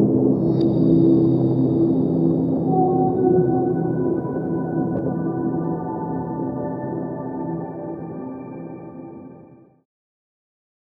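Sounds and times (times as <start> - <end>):
whale song: 0.0 - 7.4.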